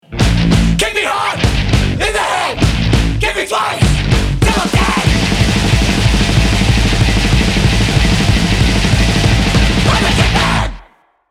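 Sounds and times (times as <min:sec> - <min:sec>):
kick drum: 0:00.2 - 0:00.8, 0:01.5 - 0:02.0, 0:02.6 - 0:03.2, 0:03.8 - 0:10.4.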